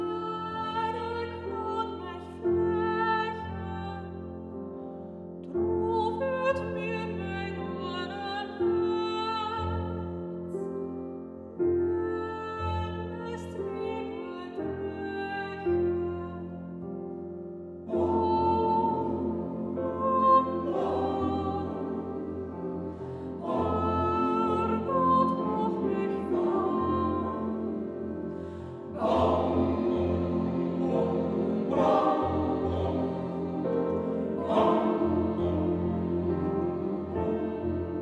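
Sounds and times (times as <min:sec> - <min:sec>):
Transylvanian church choir singing: 0:00.0 - 0:38.0
piano: 0:00.0 - 0:38.0.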